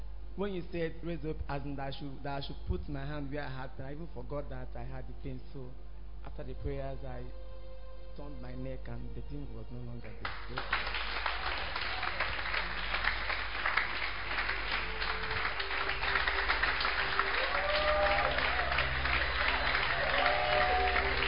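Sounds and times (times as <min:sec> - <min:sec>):
speech: 0:00.4 - 0:07.5, 0:08.2 - 0:11.1
crowd clapping: 0:10.0 - 0:21.2
rising whoops or tones: 0:11.1 - 0:12.6, 0:16.9 - 0:21.2.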